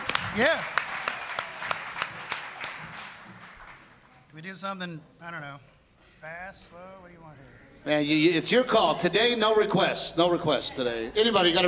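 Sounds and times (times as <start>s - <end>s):
light sparse applause: 0.0s - 4.2s
speech: 0.4s - 0.8s, 4.4s - 11.6s.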